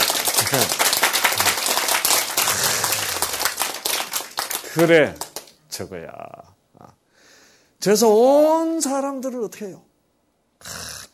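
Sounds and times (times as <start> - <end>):
audience applause: 0.0 - 5.5
speech: 0.4 - 0.9, 4.8 - 5.2, 5.8 - 7.0, 7.8 - 9.9, 10.6 - 10.9.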